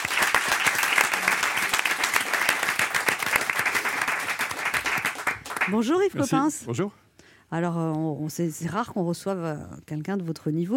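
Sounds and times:
audience applause: 0.0 - 6.1
speech: 5.7 - 10.7.

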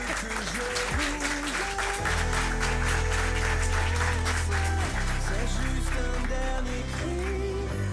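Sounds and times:
audience clapping: 0.0 - 7.8.

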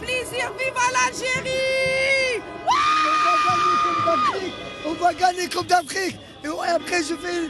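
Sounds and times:
speech: 0.2 - 1.8, 4.1 - 7.4
football supporters whooping and shouting in the street on a Paris boulevard: 2.7 - 4.6.

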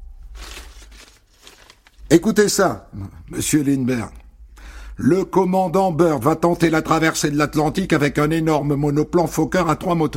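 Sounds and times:
newspaper pages rustling: 0.0 - 2.3
speech: 2.1 - 4.2, 5.0 - 10.1.

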